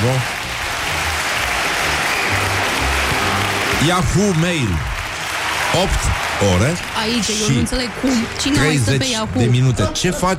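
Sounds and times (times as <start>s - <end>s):
audience applause: 0.0s - 10.1s
speech: 3.8s - 5.0s, 5.7s - 10.3s.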